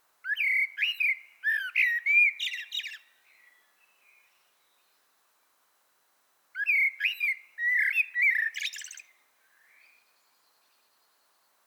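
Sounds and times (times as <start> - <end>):
common blackbird Turdus merula singing fluty phrases: 0.2 - 5.0, 6.6 - 11.1.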